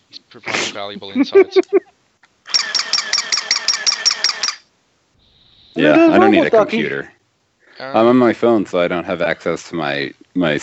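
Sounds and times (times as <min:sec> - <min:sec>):
speech: 0:00.3 - 0:01.9, 0:05.8 - 0:07.2, 0:07.8 - 0:10.6
laughter: 0:00.4 - 0:01.9, 0:05.8 - 0:07.1
mechanical toy dog whirring and grinding: 0:02.5 - 0:04.6.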